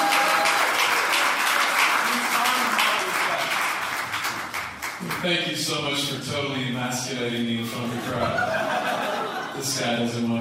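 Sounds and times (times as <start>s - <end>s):
audience applause: 0.0s - 5.3s
speech: 5.2s - 8.6s, 9.6s - 10.3s
laughter: 7.6s - 10.2s.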